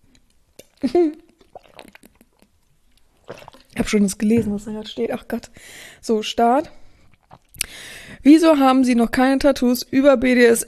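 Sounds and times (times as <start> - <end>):
person sipping water: 0.0 - 5.0, 6.8 - 7.8
mouth smacking: 0.6 - 4.8, 7.0 - 7.8
speech: 0.8 - 1.2, 3.8 - 6.8, 8.2 - 10.6.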